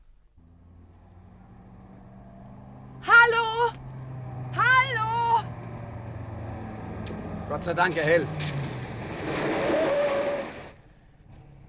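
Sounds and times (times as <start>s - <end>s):
car engine of a flagged-down car rolling up and stopping: 0.0s - 11.6s
speech: 7.5s - 8.6s.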